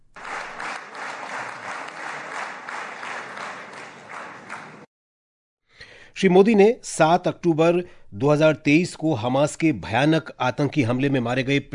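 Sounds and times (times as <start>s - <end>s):
loud applause from Israeli parliament members: 0.0s - 4.9s
speech: 6.2s - 11.7s.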